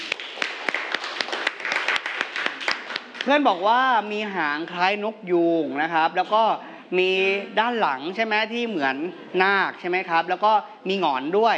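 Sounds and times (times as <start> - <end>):
applause for a classmate: 0.0 - 3.6
speech: 3.2 - 11.5.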